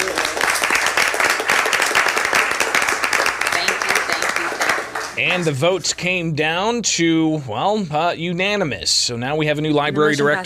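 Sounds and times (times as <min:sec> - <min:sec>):
crowd applause: 0:00.0 - 0:05.6
speech: 0:05.2 - 0:10.4.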